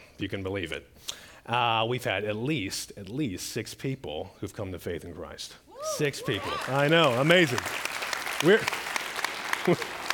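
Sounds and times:
speech: 0.2 - 7.8, 8.4 - 8.9, 9.6 - 9.9
audience clapping: 6.3 - 10.1.

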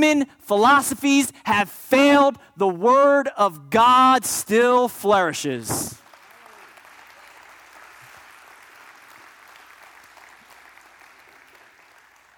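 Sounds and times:
speech: 0.0 - 6.0
audience clapping: 5.8 - 12.3.

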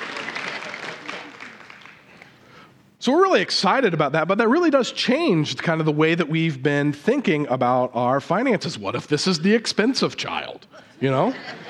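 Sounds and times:
audience clapping: 0.0 - 2.5
speech: 3.0 - 11.6
laughter: 10.8 - 11.6.

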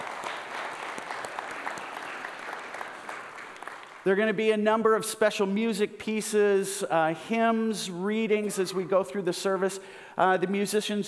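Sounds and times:
round of applause: 0.0 - 4.1
speech: 4.0 - 11.0.

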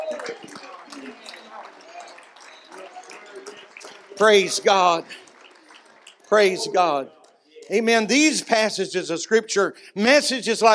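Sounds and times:
audience clapping hands: 0.0 - 8.6
speech: 4.2 - 5.2, 6.3 - 10.7.

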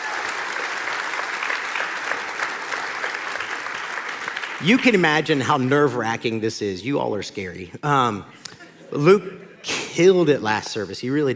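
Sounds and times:
audience applauding at a Kingsway church service: 0.0 - 5.4
speech: 4.6 - 9.4, 10.0 - 11.3
laughter: 8.3 - 9.9.

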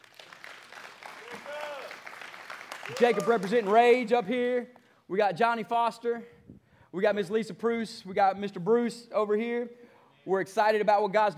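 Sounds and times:
crowd cheer: 0.0 - 4.0
audience clapping: 0.0 - 4.3
speech: 2.9 - 11.3.

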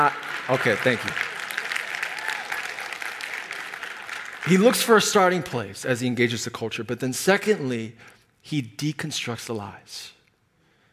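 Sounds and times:
speech: 0.0 - 1.2, 4.4 - 10.2
thin scattered audience clapping: 0.0 - 5.6.

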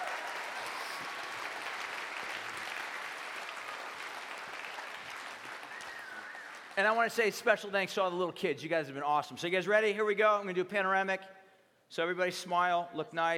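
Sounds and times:
crowd clapping: 0.0 - 7.3
speech: 6.8 - 13.3.

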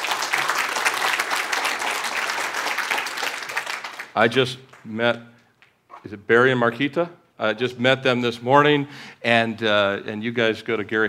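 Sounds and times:
audience clapping: 0.0 - 5.0
speech: 4.2 - 5.4, 6.0 - 11.0.

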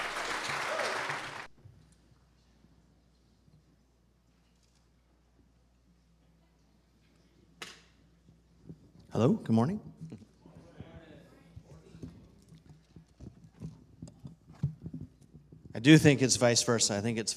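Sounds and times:
short loud burst of applause: 0.0 - 1.5
speech: 9.2 - 9.9, 15.8 - 17.3.

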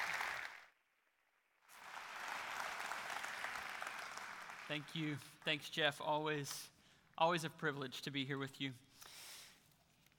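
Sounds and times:
audience applause in a church welcoming a guest speaker: 0.0 - 0.7, 1.7 - 5.1
speech: 4.7 - 9.1.

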